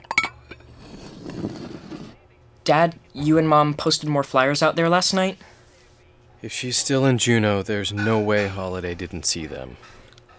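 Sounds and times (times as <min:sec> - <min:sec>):
dishes being cleared clinking: 0:00.0 - 0:01.4, 0:07.9 - 0:08.7
plates and cutlery clattering and scraping: 0:00.0 - 0:02.0, 0:07.9 - 0:08.6
speech: 0:02.6 - 0:05.5, 0:06.4 - 0:10.0.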